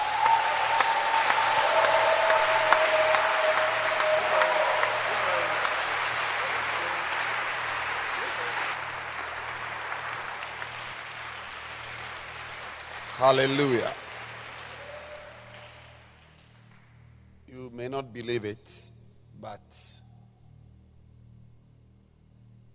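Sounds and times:
audience clapping hands: 0.0s - 16.9s
speech: 13.2s - 14.0s, 17.8s - 20.0s.

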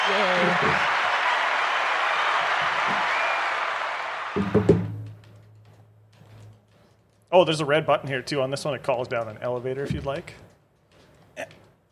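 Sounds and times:
crowd applause sound effect: 0.0s - 4.8s
speech: 0.1s - 1.0s, 4.4s - 4.6s, 7.4s - 10.5s.

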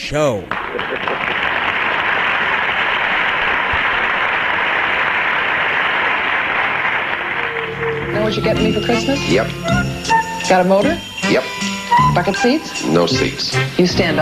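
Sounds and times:
speech: 0.1s - 1.1s, 7.8s - 14.2s
applause: 0.5s - 9.5s.

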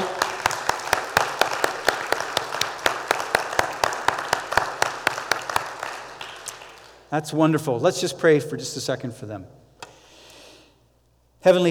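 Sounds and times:
crowd applause: 0.0s - 7.0s
speech: 7.1s - 9.6s, 11.4s - 11.7s.

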